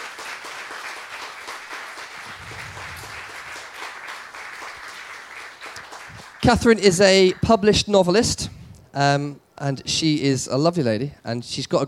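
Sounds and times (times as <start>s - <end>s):
audience applause: 0.0s - 7.6s
speech: 6.4s - 11.8s.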